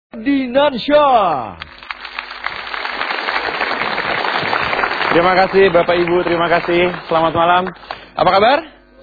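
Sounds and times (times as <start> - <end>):
speech: 0.2 - 1.7, 5.2 - 8.8
audience applause: 1.6 - 8.1.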